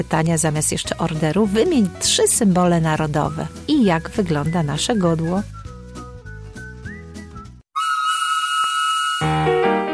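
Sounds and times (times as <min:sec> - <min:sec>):
speech: 0:00.0 - 0:05.6
steam train whistle: 0:07.8 - 0:09.8.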